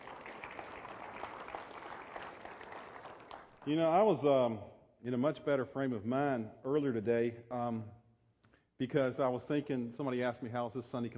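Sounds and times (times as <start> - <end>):
audience clapping: 0.0 - 4.2
speech: 3.6 - 8.0, 8.8 - 11.1.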